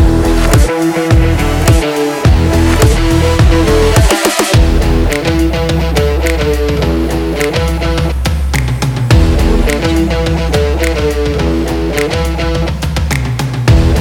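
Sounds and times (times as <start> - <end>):
pulse pounding electronic rock music: 0.0 - 14.0.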